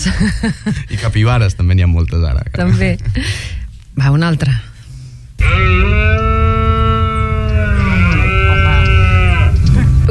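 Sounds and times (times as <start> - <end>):
speech: 0.0 - 4.7, 5.4 - 6.4
low rumbling background: 0.0 - 10.0
red deer stag bellowing during rut: 5.4 - 10.0.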